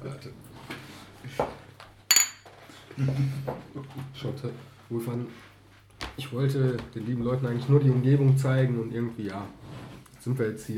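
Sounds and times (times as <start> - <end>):
mugs clinking in a toast: 2.1 - 2.5
speech: 3.0 - 5.5, 6.2 - 10.7.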